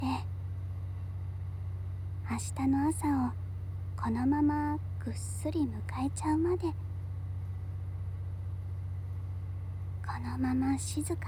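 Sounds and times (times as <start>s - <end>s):
running electric locomotive hum and rumble: 0.0s - 11.2s
speech: 2.3s - 3.4s, 4.0s - 6.8s, 10.2s - 11.2s.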